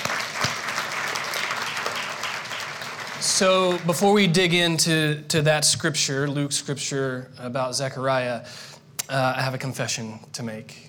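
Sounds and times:
audience clapping: 0:00.0 - 0:04.4
speech: 0:03.3 - 0:10.8.

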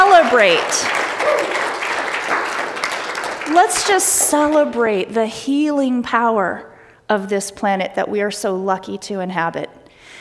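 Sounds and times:
audience clapping: 0:00.0 - 0:05.0
speech: 0:00.3 - 0:01.8, 0:03.5 - 0:09.8.

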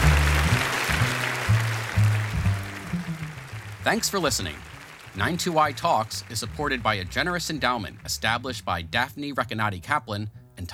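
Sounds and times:
audience applause: 0:00.0 - 0:08.5
speech: 0:03.9 - 0:10.7.

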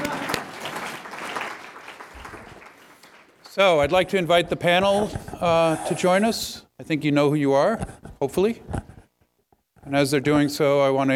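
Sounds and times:
audience clapping: 0:00.0 - 0:03.6
speech: 0:03.6 - 0:08.8, 0:09.9 - 0:11.1.

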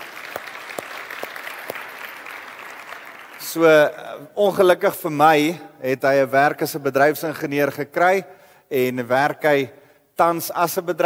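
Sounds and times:
audience applause: 0:00.0 - 0:03.6
speech: 0:03.5 - 0:11.0.

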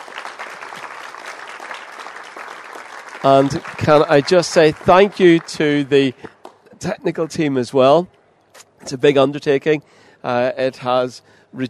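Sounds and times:
audience applause: 0:00.0 - 0:06.5
speech: 0:03.2 - 0:08.2, 0:08.8 - 0:11.6.

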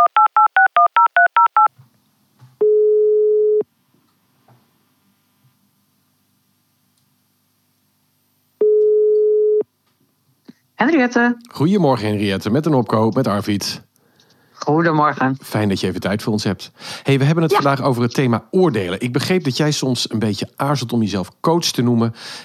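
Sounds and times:
long steady telephone ringing tones: 0:00.0 - 0:01.7, 0:02.6 - 0:03.6, 0:08.6 - 0:09.6
telephone keypad tones dialling a number: 0:00.0 - 0:01.7, 0:08.6 - 0:09.6
speech: 0:10.9 - 0:13.9, 0:14.6 - 0:22.4.

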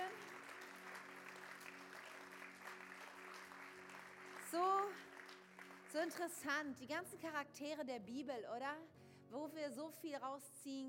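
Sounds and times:
crowd applause: 0:00.0 - 0:06.5
speech: 0:05.9 - 0:10.8.

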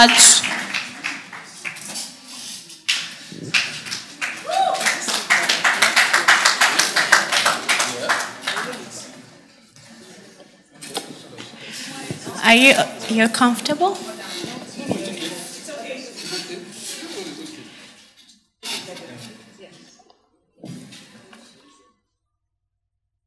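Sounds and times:
speech: 0:00.0 - 0:00.3, 0:12.5 - 0:14.1
audience applause: 0:00.0 - 0:09.1
laughter: 0:15.9 - 0:18.0.

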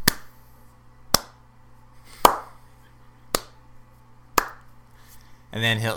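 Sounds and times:
faint low hum: 0:00.0 - 0:05.9
one person clapping: 0:02.2 - 0:02.6, 0:03.3 - 0:03.6, 0:04.4 - 0:04.6
speech: 0:05.5 - 0:05.9.

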